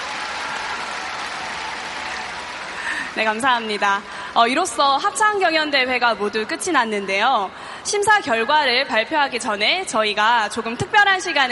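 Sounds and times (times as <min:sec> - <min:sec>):
audience applause: 0:00.0 - 0:04.2
speech: 0:03.2 - 0:11.5.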